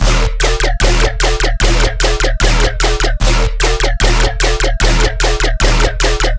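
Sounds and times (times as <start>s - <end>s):
bass loop at 150 bpm in D sharp: 0.0s - 6.3s.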